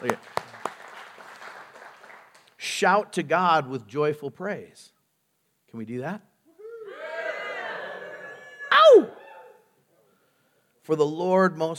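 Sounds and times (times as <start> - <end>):
speech: 0.0 - 0.4, 2.8 - 4.9, 5.7 - 6.3, 10.9 - 11.7
people clapping: 0.0 - 2.7.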